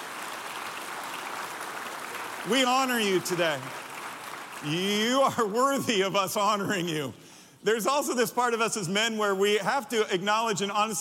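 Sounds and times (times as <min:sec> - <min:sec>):
applause: 0:00.0 - 0:06.0
speech: 0:02.4 - 0:03.8, 0:04.6 - 0:11.0.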